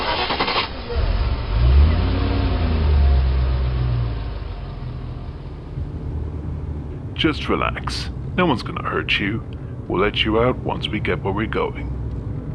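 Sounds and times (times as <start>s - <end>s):
vehicle engine revving as it takes off quickly: 0.0s - 8.6s
speech: 7.2s - 12.0s.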